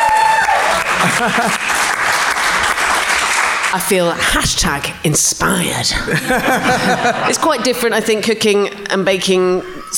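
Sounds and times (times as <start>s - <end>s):
round of applause: 0.0s - 3.9s
laughter: 0.8s - 2.6s, 6.1s - 8.3s
speech: 1.2s - 1.8s, 3.7s - 9.9s.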